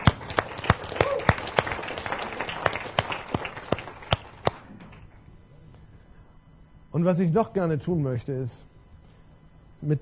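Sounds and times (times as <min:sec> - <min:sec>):
audience applause: 0:00.0 - 0:05.0
speech: 0:07.0 - 0:08.7, 0:09.8 - 0:10.0.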